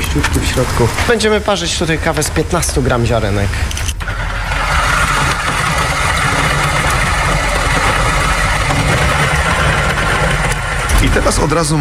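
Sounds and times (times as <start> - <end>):
electric coffee grinder grinding beans: 0.0 - 11.7
speech: 0.2 - 4.3, 11.1 - 11.7.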